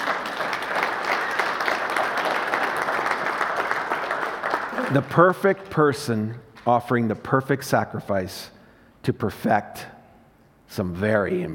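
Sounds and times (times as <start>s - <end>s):
audience clapping hands: 0.0s - 6.3s
speech: 4.9s - 9.9s, 10.7s - 11.5s.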